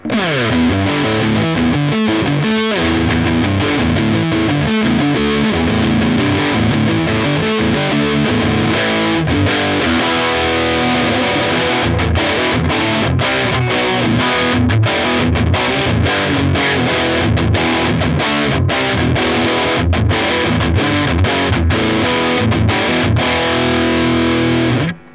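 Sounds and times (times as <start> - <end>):
high gain electric guitar on bridge pickup: 0.0 - 25.1.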